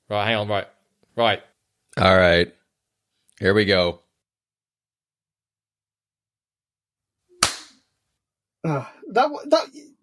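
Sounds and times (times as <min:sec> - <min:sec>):
speech: 0:00.1 - 0:02.6, 0:03.4 - 0:04.0, 0:08.6 - 0:09.9
hand claps: 0:07.4 - 0:07.8.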